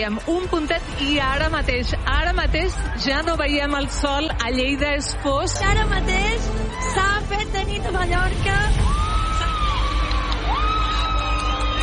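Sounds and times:
speech: 0.0s - 9.0s
crowd shouting and whooping on a beach: 2.5s - 7.6s, 8.6s - 11.8s.

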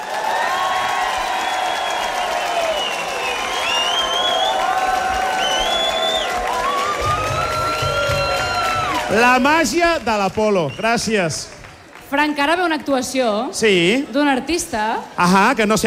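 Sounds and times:
audience cheering: 0.0s - 11.5s
audience applause: 0.0s - 12.8s
speech: 9.1s - 15.8s.

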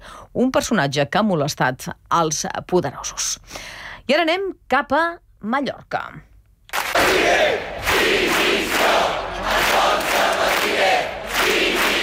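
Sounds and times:
speech: 0.4s - 6.3s, 7.0s - 9.2s
crowd of protesters shouting against police charges: 7.0s - 12.0s.

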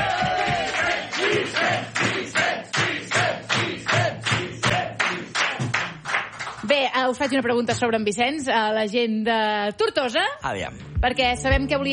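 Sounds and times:
audience applause: 0.0s - 6.6s
speech: 7.0s - 11.9s.

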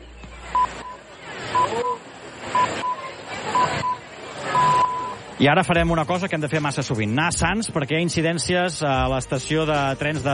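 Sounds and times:
radio hourly time signal pips: 0.5s - 5.2s
speech: 5.4s - 10.3s.

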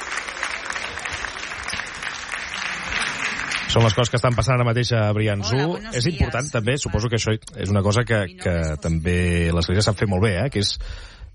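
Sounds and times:
crowd applause at a prison visit by the Pope: 0.0s - 5.7s
speech: 3.7s - 11.3s.

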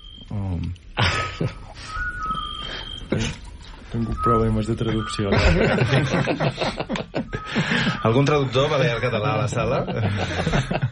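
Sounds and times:
speech: 0.6s - 1.6s, 4.0s - 10.9s
laughter: 1.0s - 1.8s, 4.9s - 10.9s
scops owl calling: 1.4s - 6.2s, 7.1s - 9.7s.

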